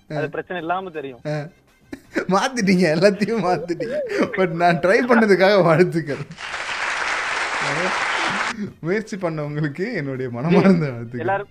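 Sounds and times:
speech: 0.1s - 1.6s, 2.2s - 6.6s, 7.6s - 11.4s
laughter: 2.0s - 6.5s
audience clapping: 6.1s - 8.6s.

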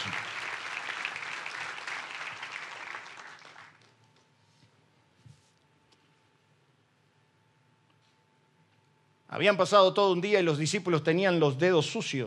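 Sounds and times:
large crowd clapping: 0.0s - 4.2s
faint hum: 0.0s - 12.2s
speech: 9.3s - 12.2s.

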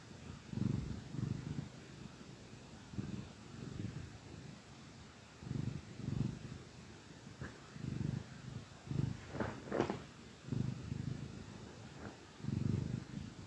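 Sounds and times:
cat purring: 0.0s - 13.4s
rustle: 9.0s - 10.1s.

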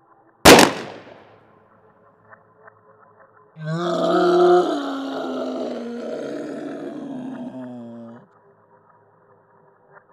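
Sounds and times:
speech: 3.6s - 3.9s
animal-like scream of pain from a woman: 3.6s - 8.2s.

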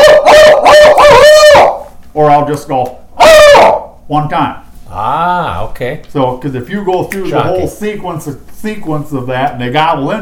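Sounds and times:
person imitating an owl call: 0.0s - 1.8s, 3.2s - 3.9s
speech: 2.2s - 3.0s, 3.6s - 10.2s.

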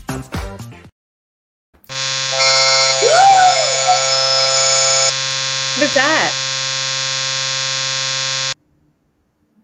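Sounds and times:
electronic alert tone: 1.9s - 8.6s.

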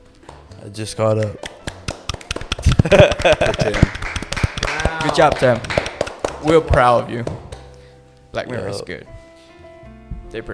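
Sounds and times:
people clapping hands: 0.2s - 7.8s
speech: 0.6s - 1.5s, 2.8s - 4.1s, 5.0s - 5.8s, 6.4s - 7.4s, 8.4s - 9.1s, 10.3s - 10.5s
laughter: 2.6s - 5.6s.

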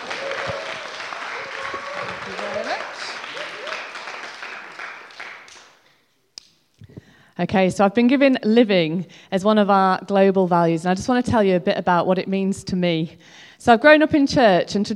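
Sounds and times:
audience applause welcoming four speakers to the stage: 0.0s - 5.8s
speech: 7.4s - 14.9s.

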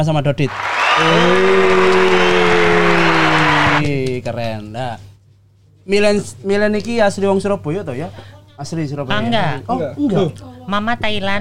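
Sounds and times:
speech: 0.0s - 2.9s, 3.8s - 5.1s, 5.8s - 11.3s
audience applause: 0.4s - 3.8s.

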